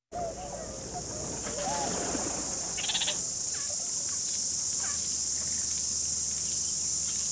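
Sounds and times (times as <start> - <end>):
wood pigeon flying by: 0.2 - 3.9.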